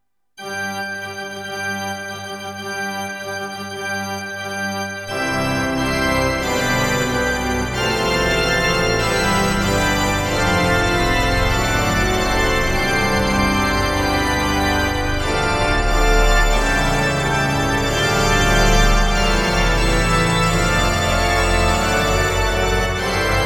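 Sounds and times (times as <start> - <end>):
opening theme organ music: 0.4 - 23.4.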